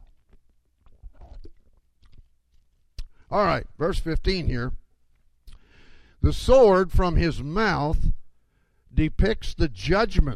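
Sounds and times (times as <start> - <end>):
person sipping water: 0.0 - 3.2
speech: 3.3 - 4.8, 6.2 - 8.2, 8.9 - 10.3.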